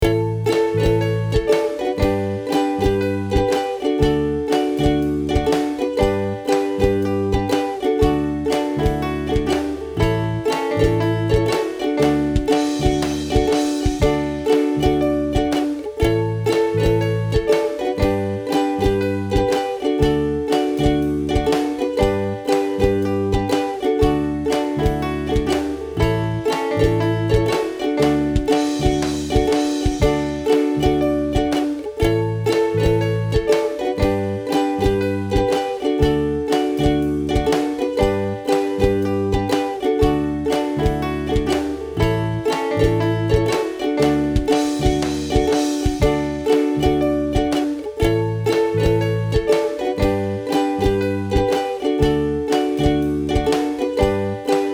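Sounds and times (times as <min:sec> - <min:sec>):
ukulele: 0:00.0 - 0:54.7.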